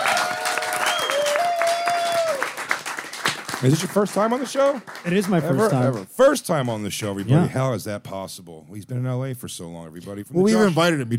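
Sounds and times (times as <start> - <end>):
talk show audience applause and cheers greeting a guest: 0.0 - 6.4
speech: 3.6 - 11.1.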